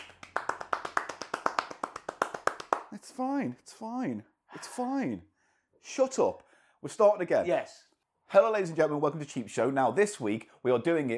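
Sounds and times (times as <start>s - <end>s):
hand clap: 0.0s - 3.1s
speech: 3.1s - 11.1s.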